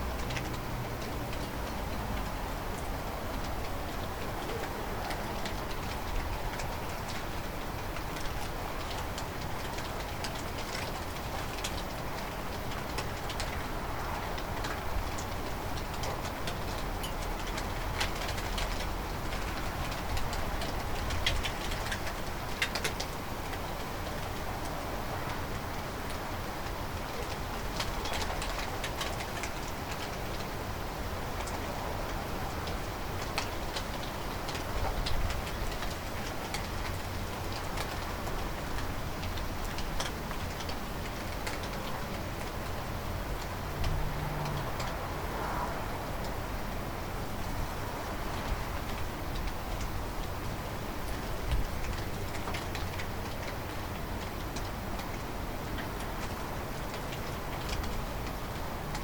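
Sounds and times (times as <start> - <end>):
rain: 0.0 - 59.0.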